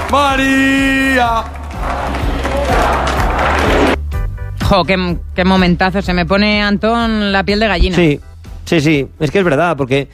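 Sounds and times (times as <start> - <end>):
crowd applauding: 0.0 - 4.0
speech: 0.1 - 3.9, 4.7 - 10.1.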